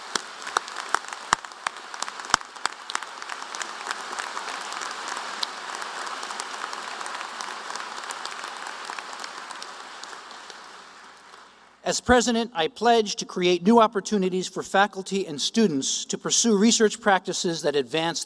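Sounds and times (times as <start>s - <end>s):
audience applause: 0.0s - 11.6s
speech: 11.9s - 18.2s.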